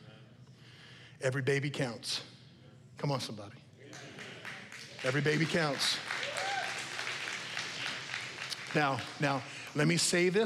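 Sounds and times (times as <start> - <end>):
speech: 1.2 - 2.3, 3.0 - 4.1, 5.0 - 6.1, 8.7 - 10.4
audience cheering: 3.9 - 9.5.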